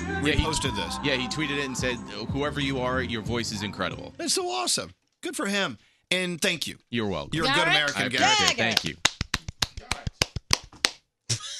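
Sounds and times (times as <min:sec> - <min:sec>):
speech: 0:00.2 - 0:09.1
one person clapping: 0:07.8 - 0:11.0.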